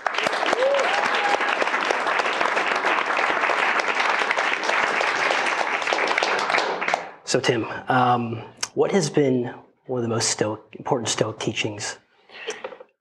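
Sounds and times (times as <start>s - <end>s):
audience applause welcoming a podcast guest: 0.0s - 7.2s
speech: 7.3s - 12.6s.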